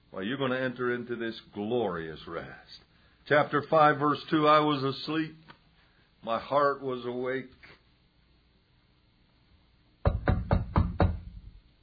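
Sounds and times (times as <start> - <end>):
speech: 0.2 - 5.5, 6.2 - 7.6
knocking on a door: 10.0 - 11.5.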